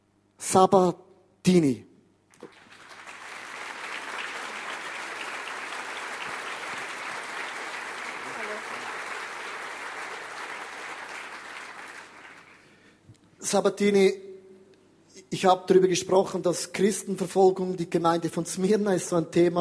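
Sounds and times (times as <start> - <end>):
speech: 0.4 - 1.9, 13.5 - 14.3, 15.2 - 19.5
audience applause: 2.4 - 12.8.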